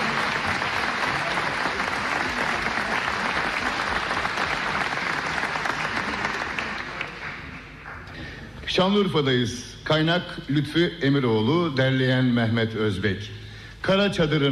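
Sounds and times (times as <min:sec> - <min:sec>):
audience applauding musicians after a Turkish folk song: 0:00.0 - 0:08.1
speech: 0:08.8 - 0:14.5.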